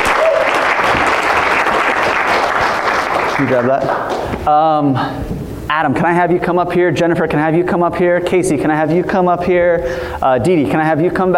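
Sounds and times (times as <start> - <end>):
audience applause: 0.0 - 4.3
speech: 3.4 - 11.3.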